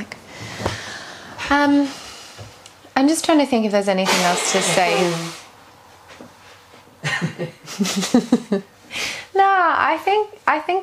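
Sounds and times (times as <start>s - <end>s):
speech: 1.5s - 2.0s, 3.0s - 5.4s, 7.4s - 8.7s, 9.4s - 10.8s
nose blowing: 4.0s - 5.6s.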